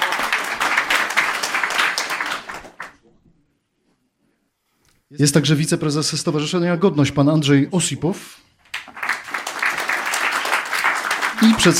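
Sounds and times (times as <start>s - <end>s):
applause: 0.0s - 3.0s, 8.7s - 11.7s
speech: 5.1s - 8.4s, 11.4s - 11.7s.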